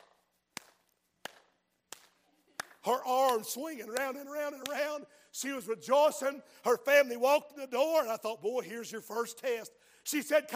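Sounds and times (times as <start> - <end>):
hand clapping: 0.0 - 5.0
speech: 2.8 - 10.5.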